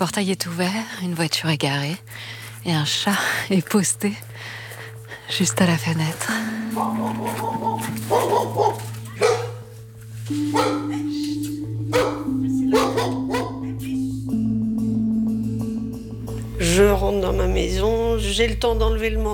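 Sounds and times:
speech: 0.0 - 4.6, 5.3 - 8.8, 16.6 - 19.3
low droning hum: 0.0 - 19.3
dog barking: 6.8 - 9.7, 10.5 - 11.0, 11.9 - 13.6.

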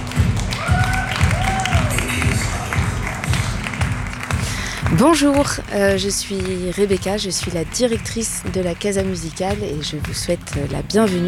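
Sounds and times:
regular low thumping pulse: 0.0 - 11.0
crowd applauding: 0.0 - 11.2
whistles and cheers: 0.4 - 3.5
speech: 5.0 - 11.2.

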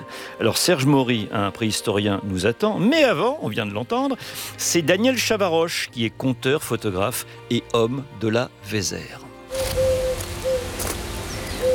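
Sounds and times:
speech: 0.4 - 9.2
turtle dove cooing: 9.5 - 11.7.

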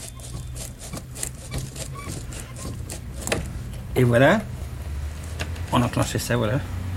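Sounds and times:
wind-up phonograph motor running: 0.0 - 3.0
speech: 4.0 - 4.5, 5.7 - 6.8.

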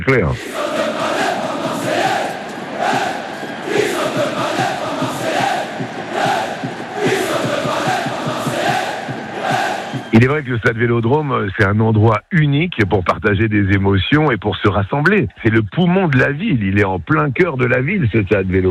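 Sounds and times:
speech: 0.0 - 1.1, 10.2 - 18.6
stadium crowd chanting and shouting: 0.0 - 11.7.

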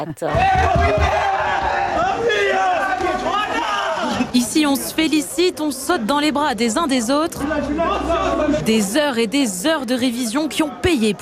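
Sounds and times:
speech: 0.0 - 11.2
high school students at a lycée in Nîmes cheering over baccalaureate results: 0.3 - 6.6, 7.3 - 8.9.

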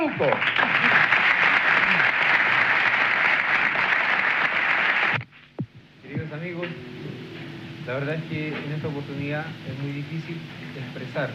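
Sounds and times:
audience applauding a musical group at an evening tribute: 0.0 - 5.2
speech: 0.1 - 1.0, 7.9 - 11.3.

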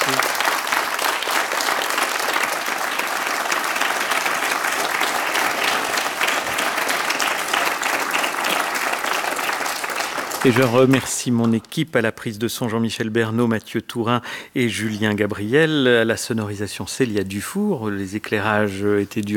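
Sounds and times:
live show audience applause: 0.0 - 11.6
speech: 10.4 - 19.3.

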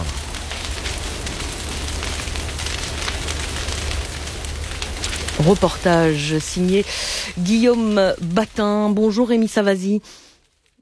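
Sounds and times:
wildfire flames burning with crackles and pops: 0.0 - 10.8
speech: 5.4 - 10.2.

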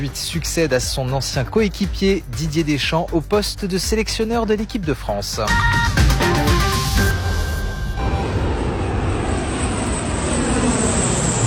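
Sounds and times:
speech: 0.0 - 6.2
Canadair water bomber aircraft flying: 7.4 - 11.4.

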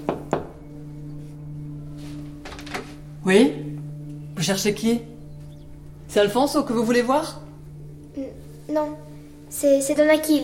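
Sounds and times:
knocking on a door: 0.0 - 0.6
steady low hum: 0.0 - 10.4
speech: 3.3 - 3.6, 4.4 - 5.1, 6.1 - 7.4, 8.7 - 9.0, 9.6 - 10.4.

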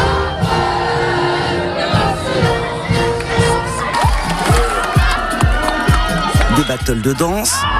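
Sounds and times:
high school students cheering and shouting outdoors: 0.0 - 7.7
scattered clapping: 3.9 - 7.0
speech: 6.7 - 7.7.

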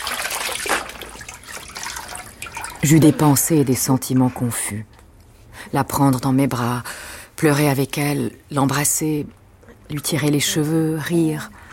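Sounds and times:
water poured to rinse a person standing in a shabby tiled room: 0.0 - 3.4
speech: 2.8 - 5.0, 5.7 - 11.6.

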